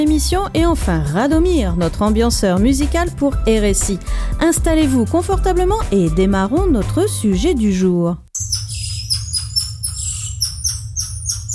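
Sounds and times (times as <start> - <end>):
speech: 0.0 - 8.5
golden lion tamarin shrill whistling call: 8.4 - 11.5.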